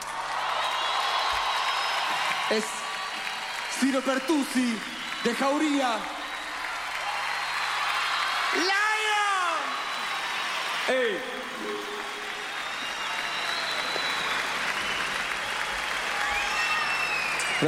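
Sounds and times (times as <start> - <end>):
crowd clapping: 0.0 - 17.6
speech: 2.5 - 2.8, 3.8 - 6.2, 8.5 - 8.8.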